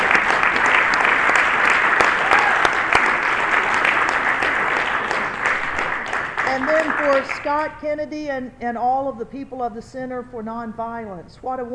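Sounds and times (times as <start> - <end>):
audience applause: 0.0 - 7.5
speech: 7.1 - 11.7.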